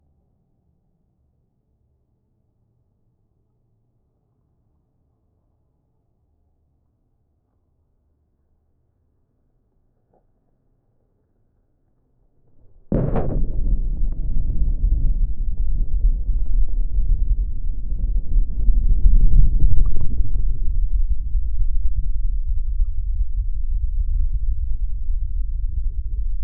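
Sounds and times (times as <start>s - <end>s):
submarine collision: 12.6s - 20.7s
submarine moving: 12.6s - 26.3s.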